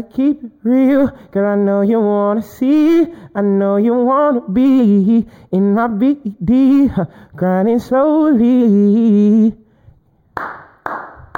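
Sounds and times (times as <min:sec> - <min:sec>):
speech: 0:00.0 - 0:09.6
one person clapping hands: 0:10.3 - 0:11.3.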